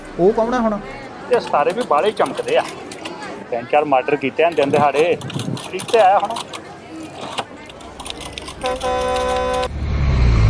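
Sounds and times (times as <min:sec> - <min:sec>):
bus engine rumble: 0:00.0 - 0:03.1, 0:06.5 - 0:10.4
speech: 0:00.2 - 0:02.9, 0:03.5 - 0:06.5, 0:08.6 - 0:09.6
bus horn honking: 0:08.6 - 0:09.8.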